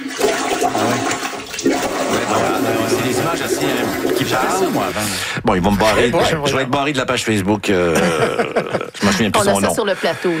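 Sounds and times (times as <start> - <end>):
toilet bowl gurgling from sewer backflow: 0.0 - 6.3
speech: 3.3 - 10.3
laughter: 7.7 - 10.3.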